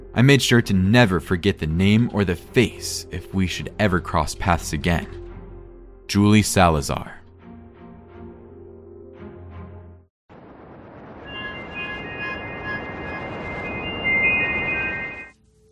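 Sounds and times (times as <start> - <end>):
speech: 0.2 - 5.2, 6.1 - 7.2
subway train running: 11.3 - 15.3.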